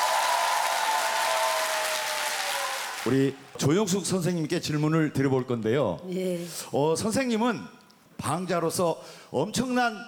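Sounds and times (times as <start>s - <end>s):
audience applause: 0.0s - 3.4s
speech: 3.0s - 10.0s.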